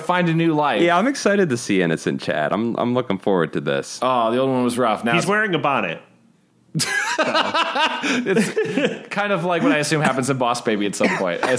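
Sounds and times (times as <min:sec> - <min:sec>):
speech: 0:00.1 - 0:06.1, 0:06.8 - 0:11.5
laughter: 0:06.8 - 0:11.5
person coughing: 0:11.0 - 0:11.5.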